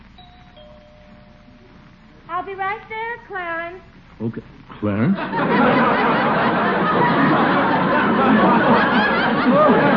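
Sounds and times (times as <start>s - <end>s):
doorbell ringing: 0.2s - 1.7s
speech: 2.4s - 7.6s
laughter: 5.0s - 9.9s.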